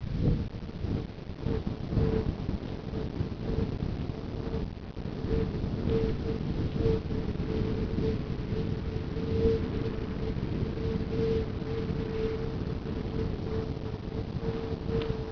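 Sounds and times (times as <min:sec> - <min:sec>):
wind: 0:00.0 - 0:15.3.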